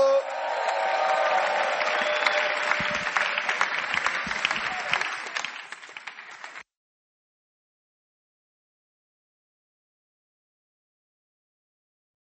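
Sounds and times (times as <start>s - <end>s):
audience clapping: 0.2s - 6.7s.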